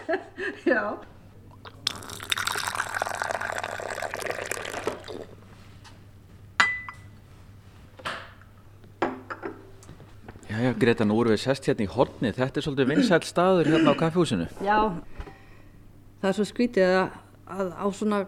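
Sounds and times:
speech: 0.1 - 1.2, 10.6 - 15.3, 16.2 - 18.2
cups and glassware clinking in a café: 1.5 - 5.4, 6.6 - 7.1
pouring or running liquid in a café: 1.6 - 5.4.

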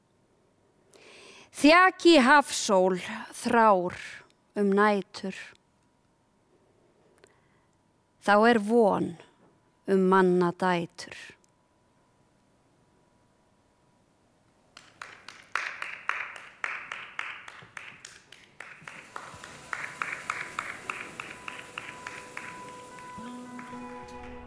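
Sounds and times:
speech: 1.6 - 5.6, 8.2 - 9.3, 9.9 - 11.4
one person clapping: 14.8 - 24.4.

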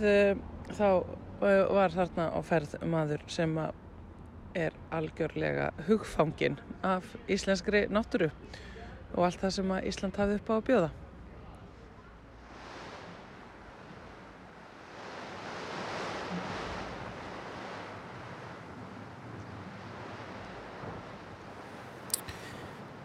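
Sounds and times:
speech: 0.0 - 3.8, 4.5 - 11.0
strong wind: 12.0 - 23.0.

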